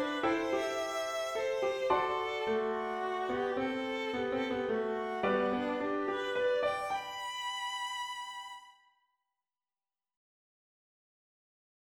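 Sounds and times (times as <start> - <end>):
waltz melody with third and fifth harmony: 0.0 - 8.0.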